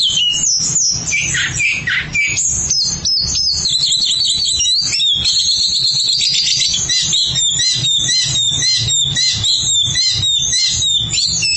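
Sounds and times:
Oriental magpie-robin singing: 0.0 - 11.5.

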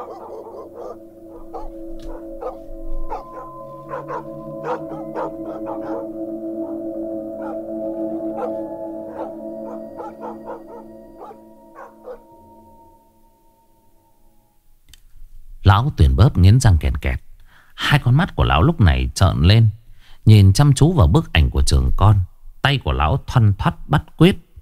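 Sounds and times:
pack of village dogs barking at night: 0.0 - 12.4
speech: 0.1 - 2.2, 4.0 - 6.8, 15.6 - 24.4.

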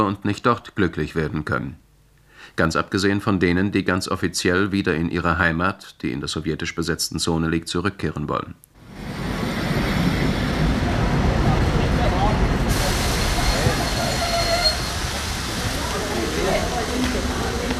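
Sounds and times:
speech: 0.0 - 1.8, 2.4 - 9.2
express train pulling into Bebra station: 8.8 - 17.7.

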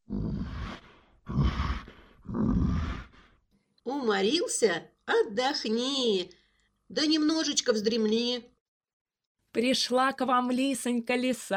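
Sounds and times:
person imitating an old man grunting while climbing onto a stove: 0.0 - 3.2
speech: 3.9 - 8.5, 9.5 - 11.5.

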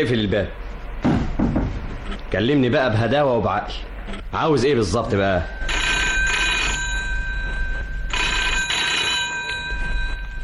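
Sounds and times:
speech: 0.0 - 0.6, 2.3 - 5.7
steady low hum: 0.0 - 10.4
telephone electric bell ringing in a button factory: 5.4 - 10.4.

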